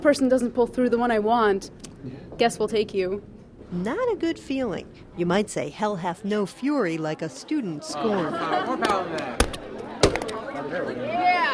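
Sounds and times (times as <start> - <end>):
speech: 0.0 - 9.6, 10.6 - 11.5
laughter: 8.0 - 9.4
fist slamming a stapler through a paper letter: 9.4 - 10.3.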